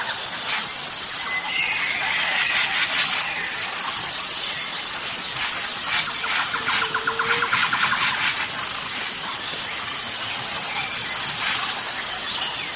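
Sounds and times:
several bird species singing in chorus: 0.0s - 12.7s.

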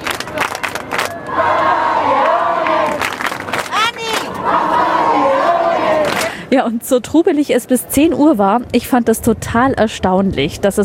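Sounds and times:
crowd shouting and cheering for the pope: 0.0s - 6.3s
speech: 6.5s - 10.8s.

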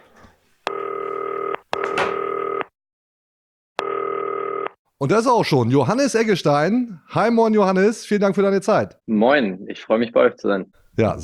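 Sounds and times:
telephone ringing tone heard down the line: 0.7s - 2.7s, 3.8s - 4.8s
speech: 5.0s - 11.2s.

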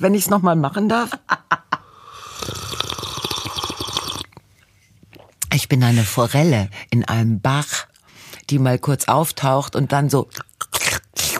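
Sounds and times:
speech: 0.0s - 1.5s, 5.7s - 7.9s, 8.5s - 10.5s
voice imitating slurping water: 2.0s - 4.4s, 10.2s - 11.3s.

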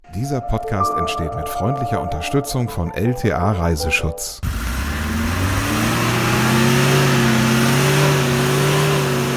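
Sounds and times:
speech: 0.2s - 5.4s
old Mercedes ambulance engine revving while stuck: 4.4s - 9.3s.

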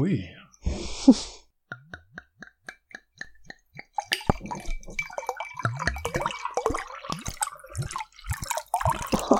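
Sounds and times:
iced tea poured from a bottle: 3.7s - 9.3s.

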